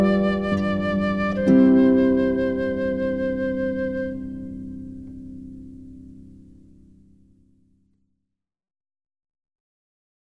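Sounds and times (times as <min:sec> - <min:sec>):
wedding march music: 0:00.0 - 0:04.0.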